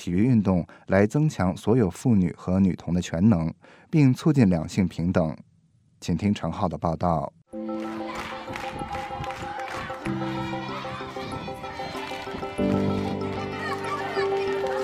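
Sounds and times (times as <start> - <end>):
speech: 0.0 - 7.9
children cheering and shouting excitedly at a school: 7.7 - 14.8
crowd of children singing at a school: 9.4 - 14.8.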